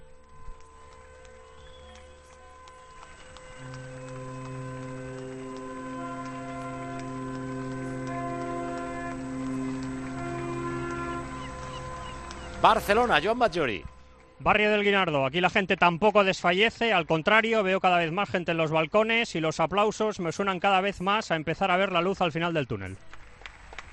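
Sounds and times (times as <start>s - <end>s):
street noise: 0.0s - 17.4s, 21.6s - 23.9s
car horns honking in the street: 3.6s - 13.8s
speech: 12.6s - 23.0s.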